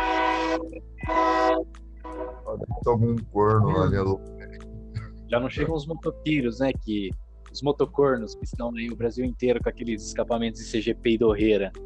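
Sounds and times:
train horn blasts: 0.0s - 2.5s
speech: 2.8s - 4.5s, 5.3s - 11.8s.

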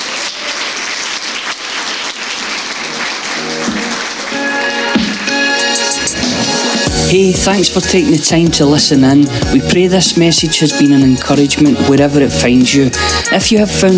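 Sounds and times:
audience applause: 0.0s - 6.9s
speech: 7.1s - 13.9s.

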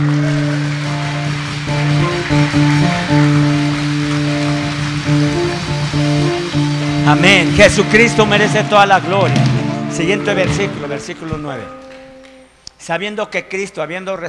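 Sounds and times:
audience loud applause: 0.0s - 8.2s
speech: 7.1s - 11.8s, 12.8s - 14.2s.

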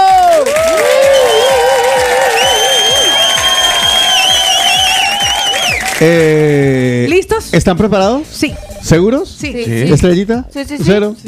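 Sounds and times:
applause: 0.0s - 6.3s
speech: 6.0s - 6.4s, 7.5s - 11.2s.

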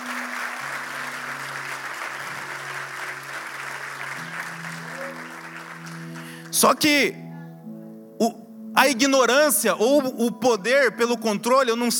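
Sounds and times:
audience applauding loudly: 0.0s - 6.9s
speech: 6.6s - 7.2s, 8.2s - 11.9s.

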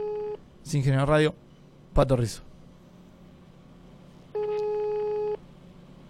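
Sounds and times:
telephone ringing with no answer: 0.0s - 0.4s, 4.4s - 5.4s
speech: 0.6s - 2.5s.

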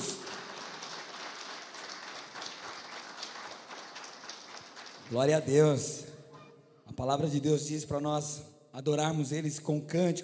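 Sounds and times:
audience applause: 0.0s - 5.3s
speech: 5.1s - 6.0s, 7.0s - 10.2s.

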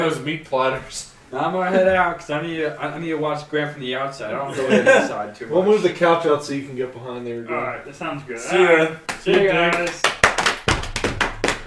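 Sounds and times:
speech: 0.0s - 10.2s
laughter: 4.4s - 5.3s
feet stamping across the floor: 10.3s - 11.6s.

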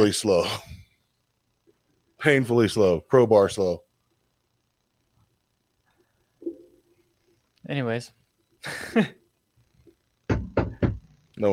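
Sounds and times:
speech: 0.0s - 0.7s, 2.2s - 3.8s, 7.7s - 9.2s
knocking on a door: 10.3s - 11.0s.

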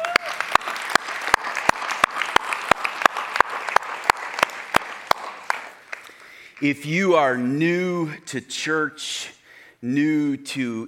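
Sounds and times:
audience applause: 0.0s - 6.5s
speech: 6.6s - 10.8s.

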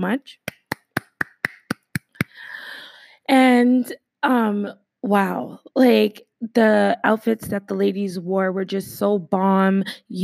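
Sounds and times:
speech: 0.0s - 0.6s, 3.3s - 10.2s
sharp claps: 0.4s - 2.4s.

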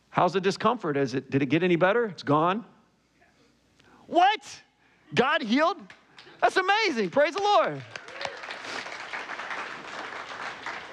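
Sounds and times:
speech: 0.2s - 2.7s, 4.1s - 8.0s
audience clapping: 5.8s - 10.9s.

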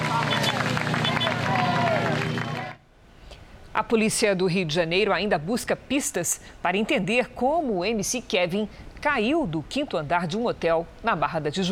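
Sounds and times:
crowd applauding at a burial: 0.0s - 2.8s
speech: 3.8s - 11.7s.

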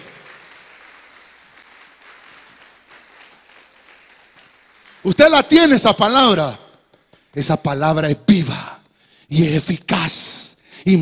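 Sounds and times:
audience clapping: 0.0s - 7.5s
speech: 5.0s - 6.6s, 7.4s - 8.3s, 9.3s - 10.9s.

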